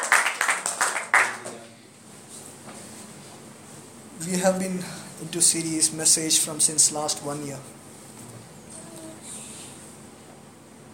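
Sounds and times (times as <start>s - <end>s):
audience applause: 0.0s - 1.6s
speech: 4.2s - 7.9s.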